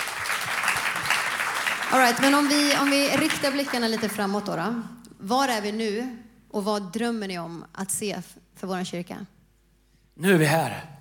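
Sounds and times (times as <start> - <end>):
applause: 0.0 - 4.7
speech: 1.9 - 9.4, 10.2 - 10.9.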